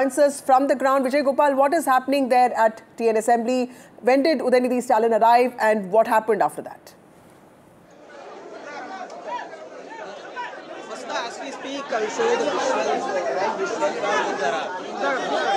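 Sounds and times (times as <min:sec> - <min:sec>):
speech: 0:00.0 - 0:07.0, 0:11.4 - 0:15.5
large crowd chattering outside legislative assembly: 0:07.9 - 0:15.5.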